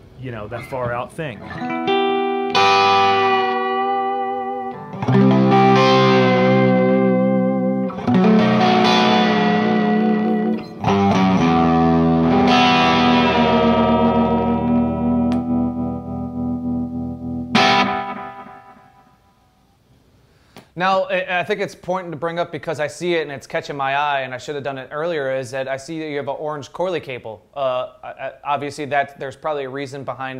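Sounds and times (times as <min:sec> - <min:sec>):
speech: 0:00.2 - 0:01.8, 0:20.8 - 0:30.3
electric guitar chords with vibrato, delay and reverb: 0:01.4 - 0:19.4.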